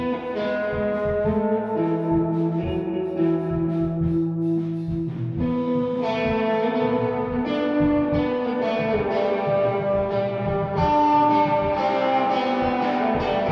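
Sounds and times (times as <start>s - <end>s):
guitar in a room: 0.0s - 13.5s.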